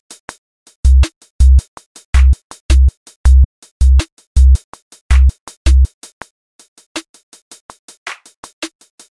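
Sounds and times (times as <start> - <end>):
music loop with beats: 0.9 - 1.6, 2.2 - 5.9.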